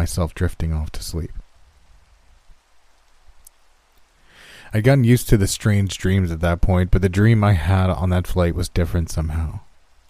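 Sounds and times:
speech: 0:00.0 - 0:01.4, 0:04.7 - 0:09.7
rain falling: 0:00.0 - 0:10.0.

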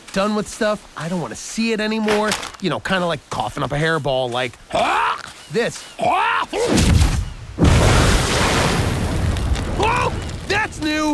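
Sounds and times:
speech: 0:00.2 - 0:07.0, 0:09.8 - 0:11.1
explosion in a ball of fire: 0:06.7 - 0:11.0.

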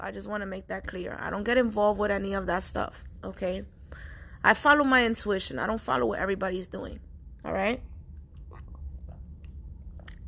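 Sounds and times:
speech: 0:00.0 - 0:07.9
person drinking water: 0:08.2 - 0:10.2.

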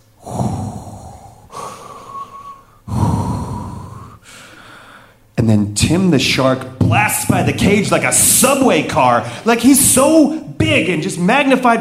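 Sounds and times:
deep breathing through scuba regulator: 0:00.0 - 0:05.3, 0:09.2 - 0:09.5
speech: 0:05.4 - 0:11.7.

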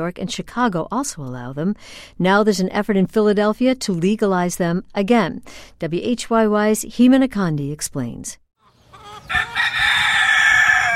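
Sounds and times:
speech: 0:00.0 - 0:08.4
rooster crowing in a northern Philadelphia backyard: 0:08.6 - 0:10.9.

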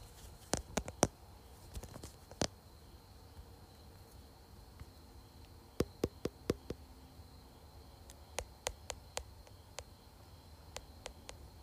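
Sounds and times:
fingertips tapping on a phone case and screen: 0:00.5 - 0:01.1, 0:05.8 - 0:06.8, 0:08.1 - 0:09.9, 0:10.7 - 0:11.4.

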